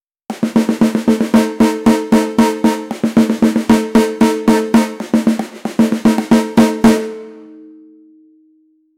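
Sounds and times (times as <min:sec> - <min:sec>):
cheerful and energetic fanfare: 0:00.4 - 0:07.5.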